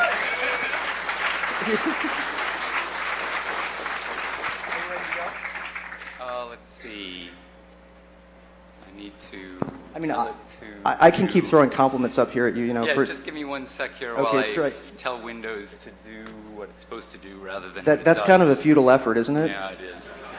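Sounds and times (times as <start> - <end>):
laughter: 0.0 - 3.1, 11.0 - 12.0, 19.5 - 20.3
audience applause: 0.0 - 6.5
speech: 1.7 - 2.3, 6.3 - 7.5, 9.0 - 20.3.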